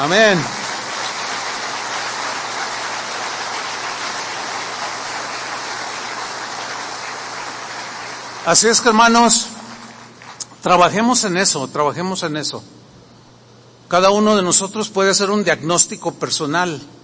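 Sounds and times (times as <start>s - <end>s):
speech: 0.0s - 0.6s, 8.4s - 9.5s, 10.6s - 12.9s, 13.9s - 17.0s
audience applauding: 0.0s - 10.6s.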